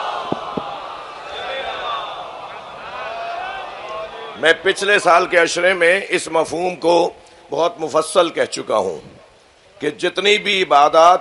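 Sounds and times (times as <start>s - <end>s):
large crowd chanting a religious salawat slogan during a sermon: 0.0s - 4.4s
speech: 4.4s - 9.1s, 9.8s - 11.1s.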